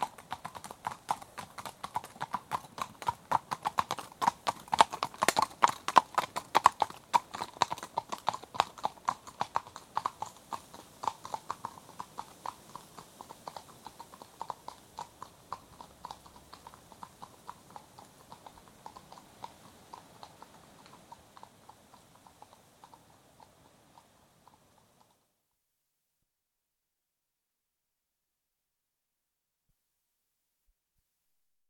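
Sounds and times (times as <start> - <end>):
walking horses' hooves on a hard road: 0.0 - 25.2
wind: 0.0 - 25.4.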